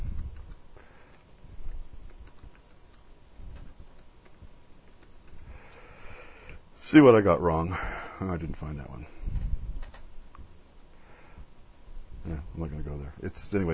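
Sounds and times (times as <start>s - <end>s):
typing a search on a computer keyboard: 0.0s - 0.6s, 1.7s - 5.4s
speech: 6.9s - 9.4s, 12.6s - 13.7s.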